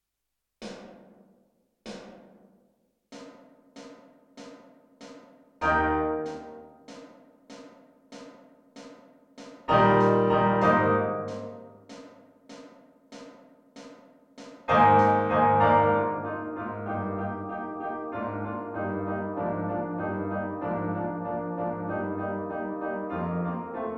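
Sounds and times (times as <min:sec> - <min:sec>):
slow piano: 0:05.6 - 0:06.9, 0:09.7 - 0:11.8, 0:14.7 - 0:23.9.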